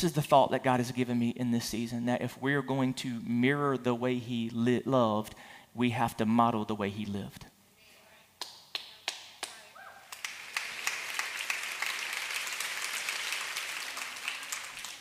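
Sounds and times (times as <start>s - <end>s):
speech: 0.0s - 7.5s
audience clapping: 8.4s - 14.9s.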